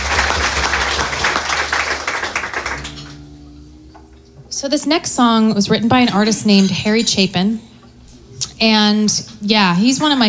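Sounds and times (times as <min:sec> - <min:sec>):
small audience applauding: 0:00.0 - 0:03.5
speech: 0:04.6 - 0:07.7, 0:08.6 - 0:10.2.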